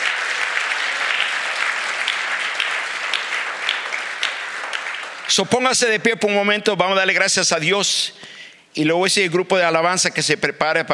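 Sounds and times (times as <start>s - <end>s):
loud audience applause: 0.0s - 5.9s
speech: 5.4s - 10.9s.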